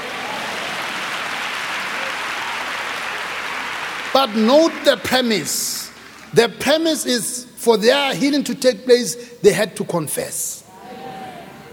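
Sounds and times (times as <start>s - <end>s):
audience applause: 0.0s - 6.4s
speech: 4.1s - 10.6s.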